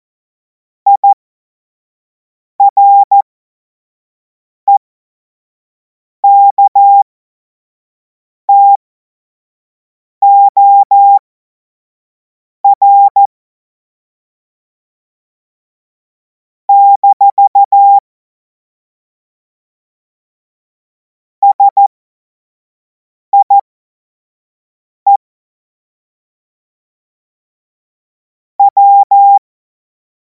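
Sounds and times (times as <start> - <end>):
CW Morse code beeps: 0.9 - 1.2, 2.6 - 3.2, 6.2 - 7.1, 8.5 - 8.8, 10.2 - 11.2, 12.7 - 13.3, 16.7 - 18.0, 21.4 - 21.9, 23.4 - 23.6, 28.6 - 29.4.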